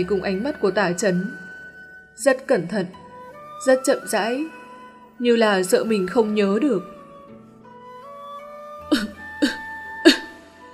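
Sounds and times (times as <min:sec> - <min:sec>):
speech: 0:00.0 - 0:01.4, 0:02.2 - 0:03.0, 0:03.6 - 0:04.6, 0:05.2 - 0:07.0
dry coughing after choking on cigarette smoke: 0:08.9 - 0:10.4.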